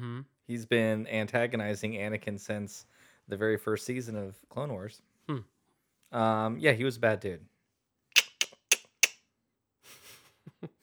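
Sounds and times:
speech: 0.5s - 5.5s, 6.1s - 7.5s
mouth clicks imitating a spider noise: 8.2s - 9.2s.

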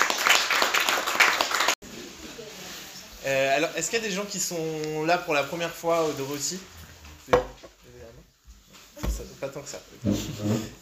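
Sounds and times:
audience applause: 0.0s - 1.8s
speech: 3.2s - 7.5s, 9.5s - 10.8s.

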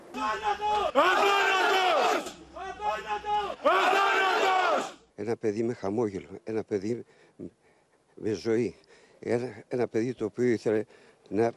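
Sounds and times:
police officers chanting: 0.1s - 5.0s
speech: 0.2s - 1.5s, 5.2s - 7.6s, 8.2s - 11.5s.

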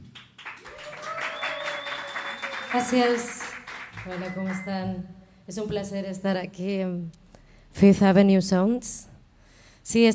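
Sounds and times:
audience applause: 0.0s - 4.7s
speech: 2.7s - 3.4s, 4.0s - 9.1s, 9.8s - 10.1s.

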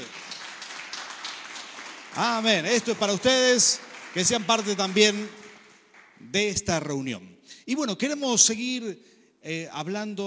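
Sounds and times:
audience applause: 0.0s - 6.2s
speech: 2.2s - 5.4s, 6.2s - 10.2s.

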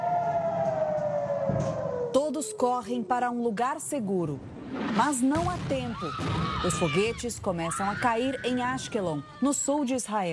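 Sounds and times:
air raid warning siren: 0.0s - 3.5s
speech: 1.6s - 10.3s.

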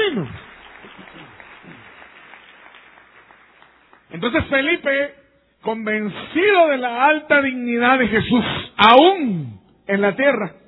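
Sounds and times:
audience applause: 0.0s - 4.1s
speech: 4.2s - 10.6s.

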